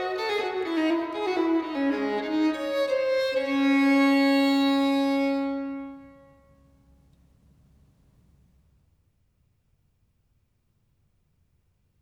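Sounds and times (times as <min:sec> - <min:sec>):
solo violin piece in D minor: 0:00.0 - 0:06.8.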